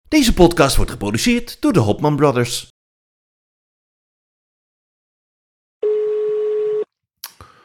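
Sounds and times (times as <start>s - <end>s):
speech: 0.1s - 2.7s
telephone ringback tone: 5.8s - 6.9s.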